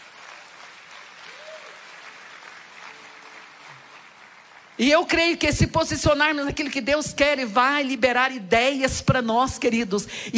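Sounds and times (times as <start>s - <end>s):
audience applause: 0.0s - 4.8s
speech: 4.8s - 10.3s.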